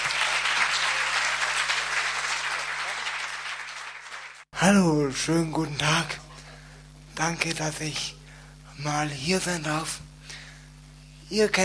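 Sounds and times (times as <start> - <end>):
audience applause: 0.0 - 4.5
speech: 4.6 - 6.2, 7.2 - 8.2, 8.8 - 10.1, 11.3 - 11.6.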